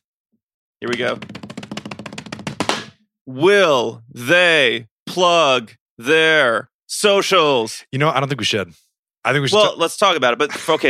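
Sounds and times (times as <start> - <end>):
speech: 0.8 - 1.4, 3.3 - 10.8
hands drumming on a tabletop: 0.9 - 3.0.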